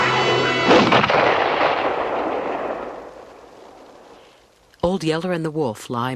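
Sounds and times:
low steady hum: 0.0 - 6.1
rifle shot: 0.6 - 4.2
speech: 4.9 - 6.1.

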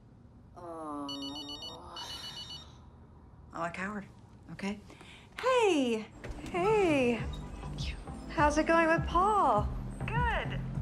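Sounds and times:
low steady hum: 0.0 - 10.8
telephone ringing in an electronic trill: 1.2 - 2.6
speech: 3.6 - 9.8.

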